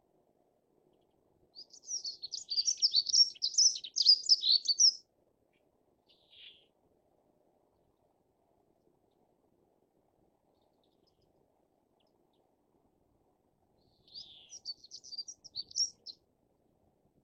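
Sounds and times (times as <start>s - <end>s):
rufous hornero singing: 1.6s - 5.0s, 6.1s - 6.7s, 13.8s - 16.2s.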